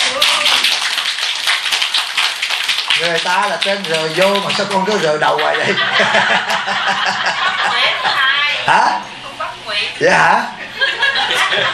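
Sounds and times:
audience clapping at a Buddhist teaching session: 0:00.0 - 0:05.8
speech: 0:03.0 - 0:08.1, 0:08.7 - 0:09.1, 0:09.8 - 0:10.6
laughter: 0:04.5 - 0:08.5, 0:10.6 - 0:11.7.

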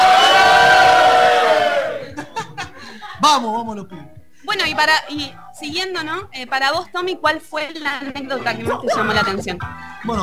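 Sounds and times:
crowd roaring and yelling: 0:00.0 - 0:02.1
people clapping: 0:00.0 - 0:02.1
laughter: 0:01.9 - 0:03.2, 0:08.4 - 0:09.6
speech: 0:03.2 - 0:10.2.

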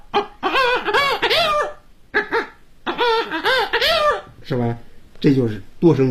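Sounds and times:
vocal mimicry performer imitating clucking hens using circular breathing: 0:00.0 - 0:04.4
speech: 0:04.5 - 0:06.0.

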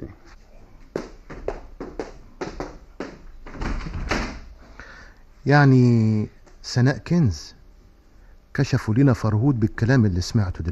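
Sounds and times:
door being closed: 0:03.5 - 0:04.5
speech: 0:05.4 - 0:07.6, 0:08.6 - 0:10.7.

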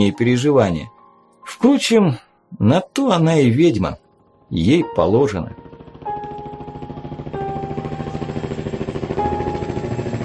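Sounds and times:
speech: 0:00.0 - 0:05.6
helicopter circling overhead: 0:05.5 - 0:10.2.

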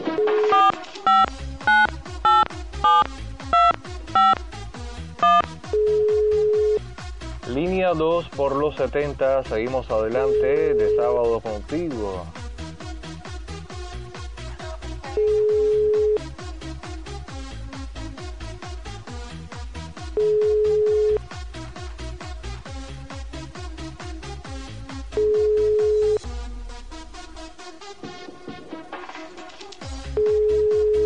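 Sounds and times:
telephone ringing on a call line: 0:00.2 - 0:04.4, 0:05.2 - 0:06.8, 0:10.2 - 0:11.3, 0:15.2 - 0:16.2, 0:20.2 - 0:21.2, 0:25.2 - 0:26.2, 0:30.2 - 0:31.0
speech: 0:08.2 - 0:12.4.

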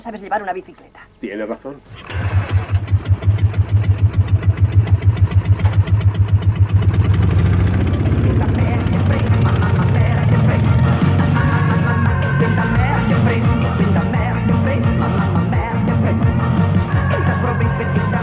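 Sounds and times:
speech: 0:00.0 - 0:02.3
motorcycle engine starting: 0:01.9 - 0:18.2.

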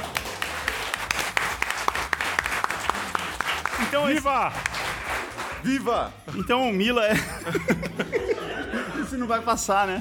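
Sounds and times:
people clapping: 0:00.0 - 0:06.7
speech: 0:03.9 - 0:04.9, 0:05.6 - 0:08.1, 0:09.2 - 0:09.9
laughter: 0:06.8 - 0:09.5.

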